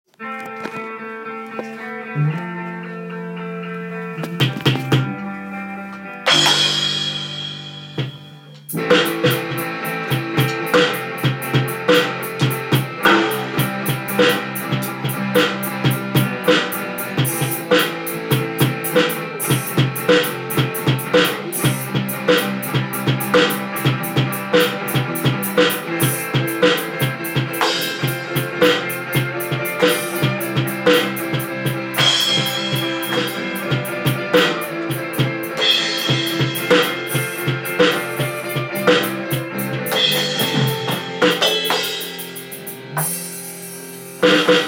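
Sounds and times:
drum: 4.2 - 5.2, 6.3 - 44.6.

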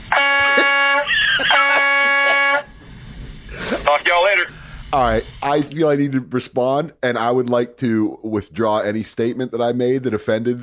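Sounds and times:
truck horn honking in Lancaster: 0.0 - 3.0
laughter: 0.4 - 2.7, 3.5 - 4.1
speech: 4.1 - 10.6.

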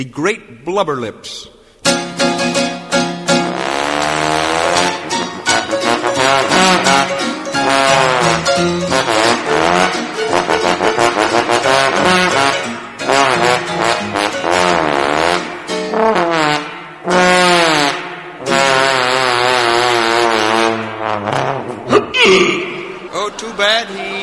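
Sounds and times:
speech: 0.0 - 2.0
trombone playing jazzy notes: 3.2 - 22.1
laughter: 21.7 - 24.2.

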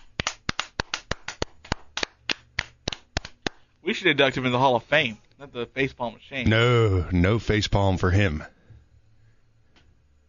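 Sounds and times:
hand claps: 0.0 - 3.8
speech: 3.8 - 8.6.

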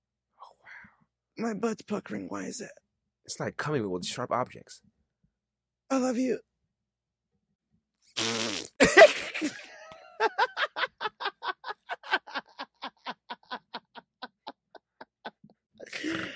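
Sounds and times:
speech: 1.4 - 4.9, 5.9 - 6.5
mouth fart made by blowing through lips: 8.1 - 8.9
laughter: 8.8 - 16.1.

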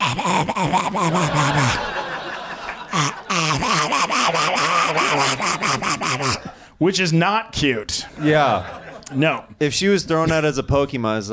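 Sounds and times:
person imitating an old cat's wheezing breathing: 0.0 - 1.9, 2.7 - 6.8
speech: 0.2 - 1.6, 6.8 - 11.3
laughter: 0.2 - 6.6, 7.9 - 9.4.

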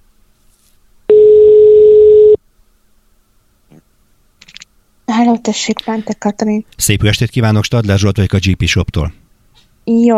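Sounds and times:
telephone dial tone while calling: 1.1 - 2.4
speech: 5.3 - 9.2, 9.9 - 10.1.

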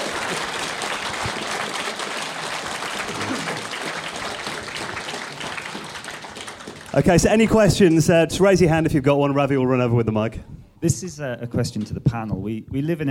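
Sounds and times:
audience applause: 0.0 - 7.9
speech: 7.0 - 13.1.

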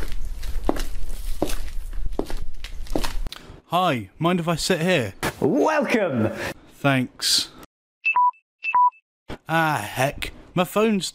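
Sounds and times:
footsteps walking back to seat: 0.0 - 3.4
speech: 3.7 - 7.6, 9.5 - 11.1.

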